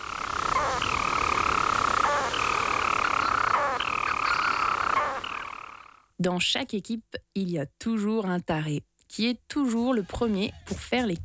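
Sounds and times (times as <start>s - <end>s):
storm petrel song: 0.0s - 6.1s, 9.6s - 11.2s
speech: 6.2s - 11.2s.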